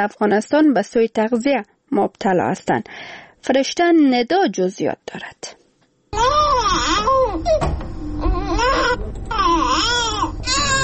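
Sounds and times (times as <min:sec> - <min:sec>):
speech: 0:00.0 - 0:07.7
malnourished young boy crying: 0:06.2 - 0:10.8.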